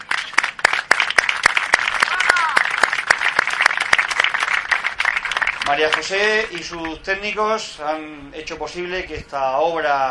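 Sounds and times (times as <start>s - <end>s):
audience applause: 0.0s - 7.0s
speech: 5.7s - 10.0s.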